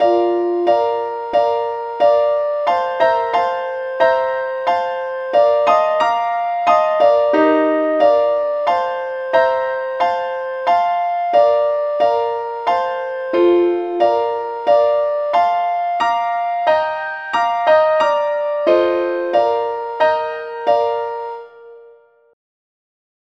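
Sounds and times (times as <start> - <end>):
music piece in the key of B flat: 0.0 - 22.4.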